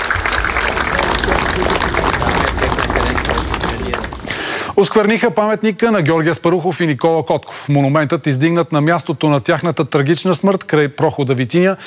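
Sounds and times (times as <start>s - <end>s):
applause at a memorial tribute: 0.0s - 5.0s
speech: 4.8s - 11.8s.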